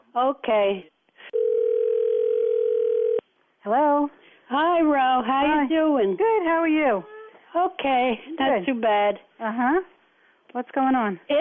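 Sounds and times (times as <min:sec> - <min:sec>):
speech: 0:00.2 - 0:00.9, 0:03.6 - 0:09.9, 0:10.5 - 0:11.4
telephone dial tone: 0:01.3 - 0:03.2.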